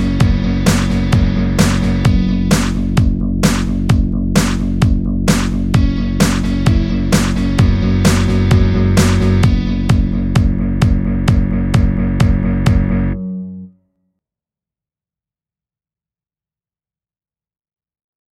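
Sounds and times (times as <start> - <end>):
tom tom drum: 0.0 - 13.0.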